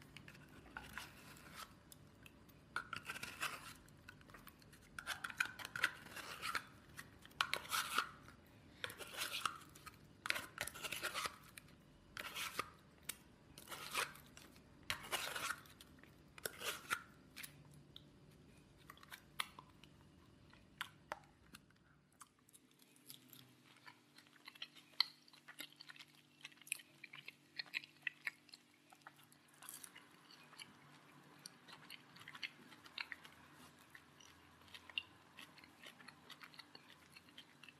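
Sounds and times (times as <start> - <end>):
person eating with crisp crunches and clicks: 0.0 - 37.7.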